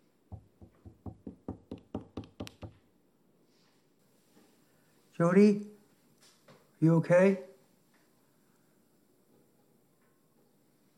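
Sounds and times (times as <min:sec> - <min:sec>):
knuckles knocking on bedroom door: 0:00.3 - 0:02.8
speech: 0:05.2 - 0:05.7, 0:06.8 - 0:07.5.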